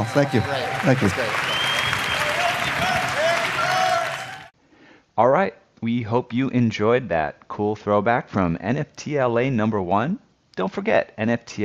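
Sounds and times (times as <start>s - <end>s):
audience applause: 0.0s - 4.5s
speech: 0.1s - 1.5s, 5.2s - 11.6s.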